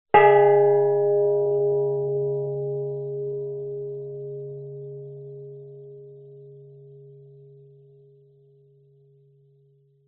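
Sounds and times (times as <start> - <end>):
large gong-like bell single hit: 0.2 - 7.7.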